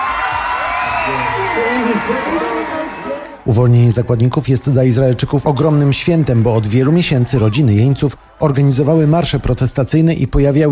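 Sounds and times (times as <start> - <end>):
people shouting in a crowd in Tel Aviv: 0.0 - 3.4, 5.1 - 9.6
large crowd in a square in Tel Aviv cheering and whooping with joy: 0.0 - 9.8
speech: 2.0 - 2.6, 3.4 - 10.7.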